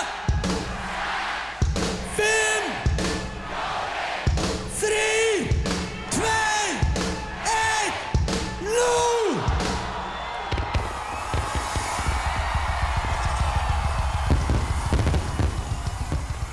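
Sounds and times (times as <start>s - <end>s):
crowd shouting countdown in unison: 0.0s - 16.5s
fireworks display crackling and popping: 10.1s - 16.5s.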